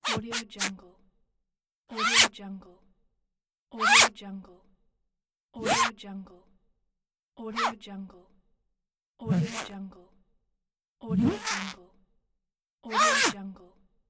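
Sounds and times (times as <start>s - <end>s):
bag zipper: 0.0s - 0.7s, 2.0s - 2.3s, 5.6s - 5.9s, 9.3s - 9.7s, 11.1s - 11.8s, 13.0s - 13.4s.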